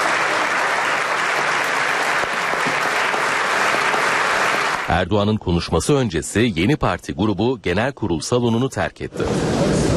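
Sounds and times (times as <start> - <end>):
parliament members' standing applause for Erdoğan in the general assembly: 0.0 - 5.0
speech: 4.9 - 9.6.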